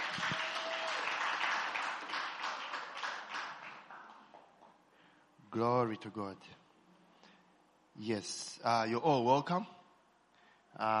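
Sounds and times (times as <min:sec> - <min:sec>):
audience applauding: 0:00.0 - 0:04.7
speech: 0:05.5 - 0:06.6, 0:08.0 - 0:09.8, 0:10.8 - 0:10.9.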